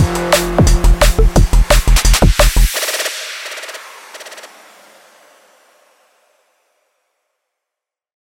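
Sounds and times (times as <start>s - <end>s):
drum and bass bassline: 0.0s - 4.8s.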